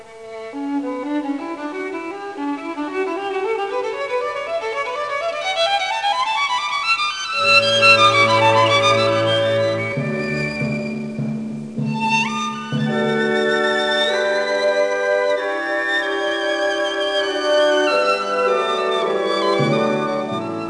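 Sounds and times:
violins: 0.0 - 20.6.

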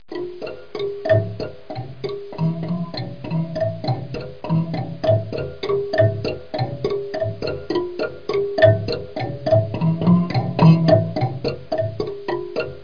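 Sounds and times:
marimba: 0.1 - 12.8.

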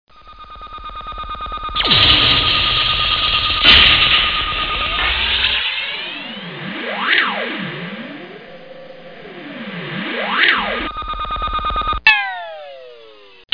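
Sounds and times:
flying saucer: 0.2 - 13.4.

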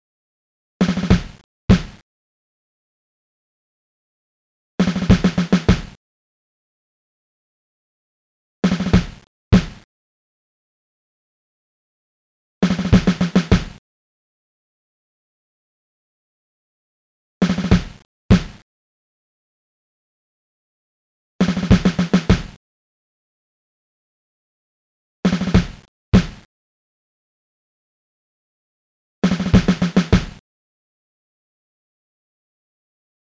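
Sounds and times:
snare drum: 0.8 - 2.0, 4.8 - 6.0, 8.6 - 9.9, 12.6 - 13.8, 17.4 - 18.6, 21.4 - 22.6, 25.3 - 26.5, 29.2 - 30.4.

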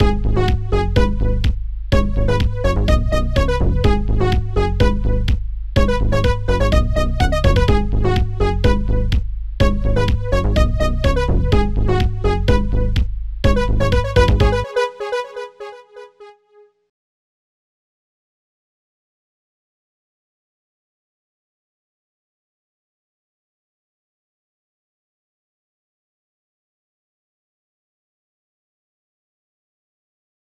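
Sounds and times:
main music: 0.0 - 16.9.

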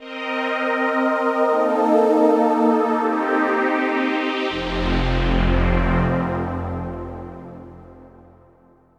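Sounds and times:
ambient synth pad in C at 160 BPM: 0.0 - 8.9.

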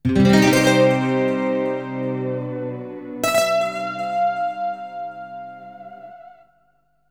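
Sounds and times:
ambient electric guitar at 160 bpm in C: 0.1 - 6.4.

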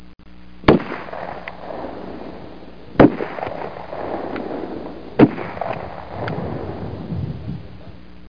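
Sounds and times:
rifle: 0.6 - 6.9.

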